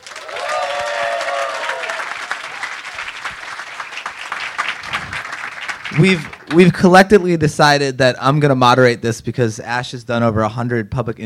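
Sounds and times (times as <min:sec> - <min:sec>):
audience applause welcoming panel guests at a design conference: 0:00.0 - 0:06.8
crowd noise: 0:00.0 - 0:07.7
speech: 0:06.0 - 0:11.2.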